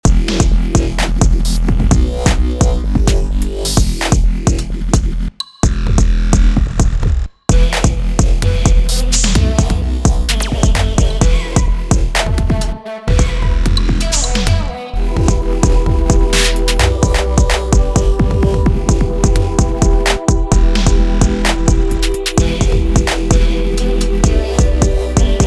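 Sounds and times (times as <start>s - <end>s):
wobble bass: 0.0s - 25.4s.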